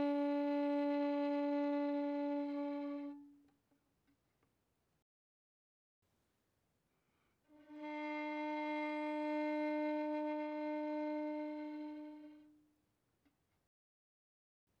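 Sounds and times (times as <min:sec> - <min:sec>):
violin bowed softly on the G string: 0:00.0 - 0:03.4, 0:07.5 - 0:12.6.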